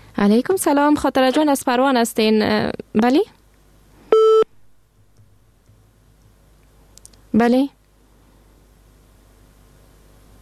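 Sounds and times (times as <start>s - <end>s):
speech: 0.2s - 3.4s, 7.4s - 7.8s
phone disconnect tone after a radio phone-in call drops: 4.1s - 4.5s.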